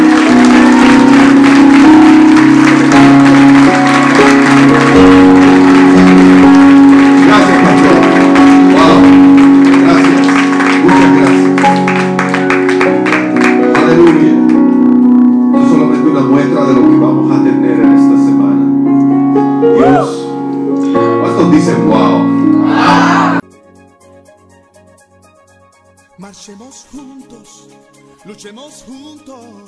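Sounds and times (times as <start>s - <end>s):
audience applause: 0.0s - 14.7s, 22.6s - 23.4s
sustained music: 0.0s - 29.6s.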